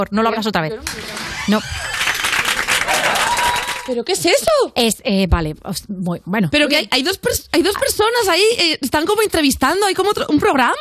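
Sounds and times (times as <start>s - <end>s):
speech: 0.0s - 2.0s, 3.9s - 10.7s
large crowd applause: 0.8s - 4.0s.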